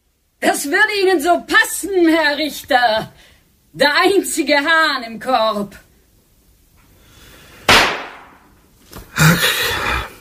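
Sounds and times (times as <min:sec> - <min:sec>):
speech: 0:00.4 - 0:05.8
pistol shots: 0:07.7 - 0:08.4.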